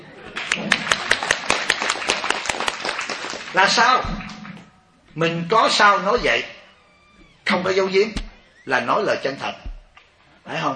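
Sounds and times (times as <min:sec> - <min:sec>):
audience rhythmic hand clapping at a Vietnamese-language teaching talk: 0:00.3 - 0:04.7
speech: 0:03.6 - 0:04.2, 0:05.2 - 0:06.5, 0:07.5 - 0:09.7.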